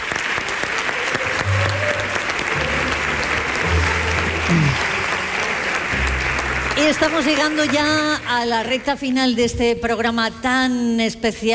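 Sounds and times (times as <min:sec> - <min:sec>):
theatre audience applause: 0:00.0 - 0:08.8
speech: 0:06.9 - 0:11.5.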